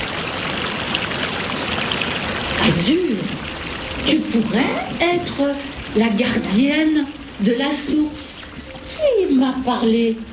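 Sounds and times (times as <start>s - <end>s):
river flowing: 0.0s - 6.4s
speech: 2.6s - 3.4s, 4.0s - 8.2s, 9.3s - 10.3s.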